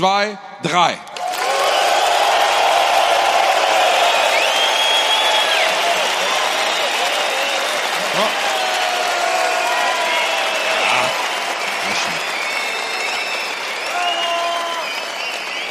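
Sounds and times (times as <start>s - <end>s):
speech: 0.0s - 1.1s
whoops: 1.2s - 11.4s, 12.2s - 15.7s
men applauding for a performer: 1.2s - 15.7s
high whistles: 3.9s - 7.8s, 10.1s - 15.7s.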